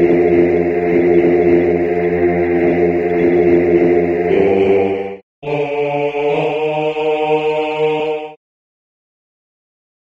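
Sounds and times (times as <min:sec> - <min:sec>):
bass voices singing: 0:00.0 - 0:08.4.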